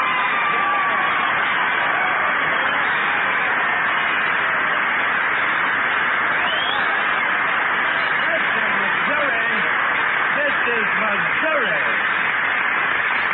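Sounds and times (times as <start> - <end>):
audience applause: 0.0 - 13.3.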